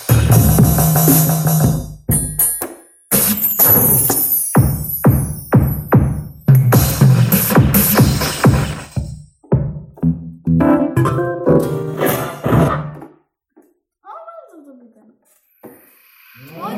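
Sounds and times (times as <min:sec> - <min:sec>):
improvised synth beat: 0:00.0 - 0:13.0.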